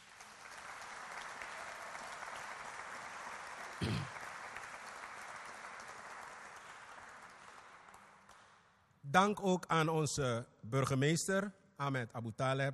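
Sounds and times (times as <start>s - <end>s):
applause: 0.0s - 8.9s
speech: 9.1s - 12.7s.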